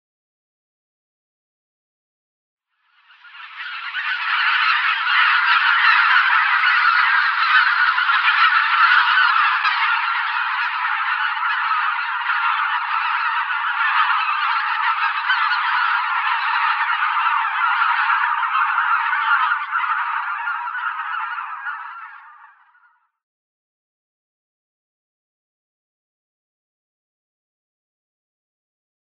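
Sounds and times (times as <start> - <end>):
Greater White-fronted Goose calling: 3.2 - 22.7.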